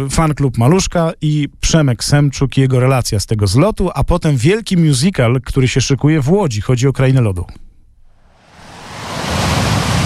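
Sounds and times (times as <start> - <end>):
speech: 0.0 - 7.6
sea waves: 8.3 - 10.0.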